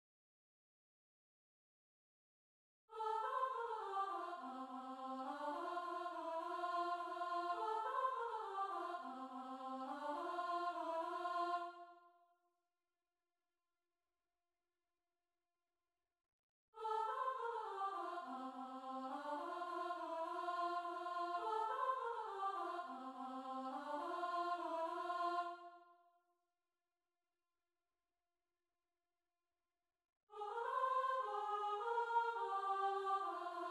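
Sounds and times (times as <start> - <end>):
soprano singing: 2.9 - 11.8, 16.8 - 25.6, 30.4 - 33.6.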